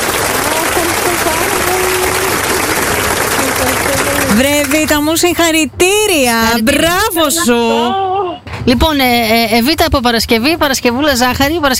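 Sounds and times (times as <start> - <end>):
applause: 0.0 - 5.0
speech: 4.3 - 11.7.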